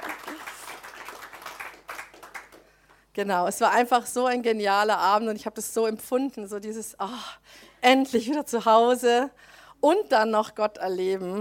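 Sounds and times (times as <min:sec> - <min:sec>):
crowd applause: 0:00.0 - 0:02.7
speech: 0:03.2 - 0:11.3.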